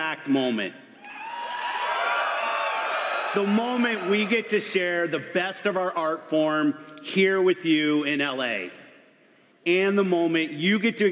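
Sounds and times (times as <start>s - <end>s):
speech: 0.1s - 0.9s, 3.3s - 8.8s, 9.6s - 11.0s
crowd screaming and cheering: 1.0s - 4.6s.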